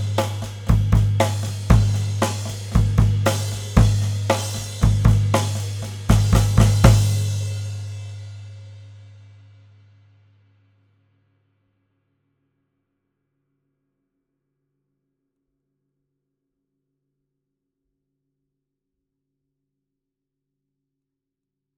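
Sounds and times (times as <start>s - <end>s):
kick drum from rear of whole kit: 0.0s - 5.5s, 6.1s - 7.2s.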